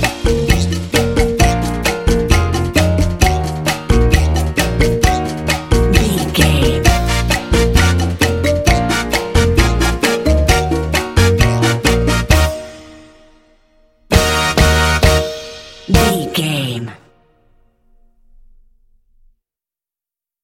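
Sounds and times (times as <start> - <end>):
cha cha cha music: 0.0 - 13.4, 14.1 - 17.0.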